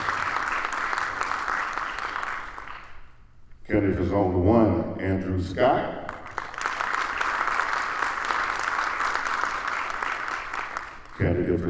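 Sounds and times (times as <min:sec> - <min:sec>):
audience clapping: 0:00.0 - 0:03.2, 0:06.0 - 0:11.4
speech: 0:03.7 - 0:06.0, 0:11.2 - 0:11.6.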